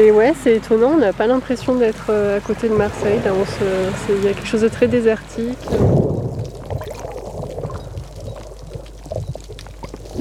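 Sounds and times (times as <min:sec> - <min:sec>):
speech: 0:00.0 - 0:06.2
surf washing against rocks on a rugged coast near Marseille: 0:01.3 - 0:09.0.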